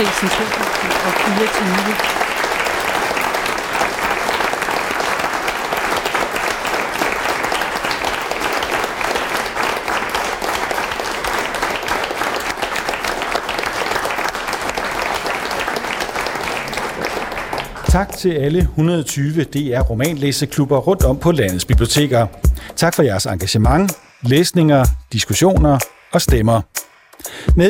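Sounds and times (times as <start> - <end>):
speech: 0.0 - 2.2, 18.0 - 26.8
big round of applause from audience: 0.0 - 18.6.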